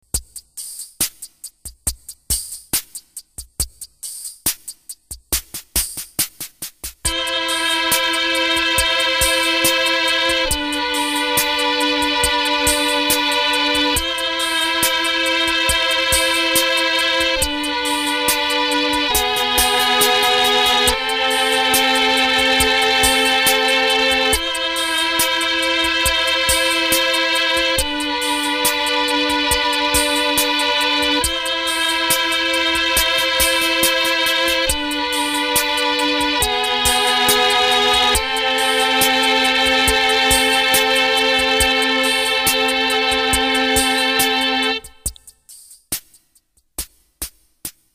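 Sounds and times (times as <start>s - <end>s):
violins: 7.1s - 45.2s.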